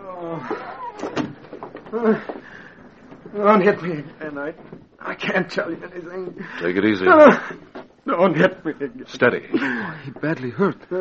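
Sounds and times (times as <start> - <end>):
speech: 0.2 - 1.2, 1.9 - 2.6, 3.3 - 10.9
door closing: 0.4 - 2.5.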